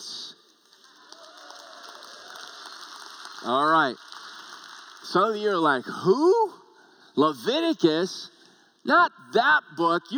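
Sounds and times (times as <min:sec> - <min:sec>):
audience applause: 0:00.6 - 0:05.6
speech: 0:03.4 - 0:04.1, 0:05.0 - 0:06.6, 0:07.2 - 0:10.1.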